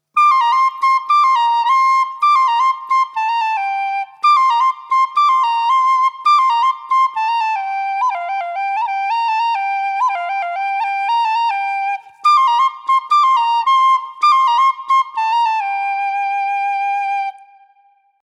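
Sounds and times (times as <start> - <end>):
whistle: 0.0 - 18.2.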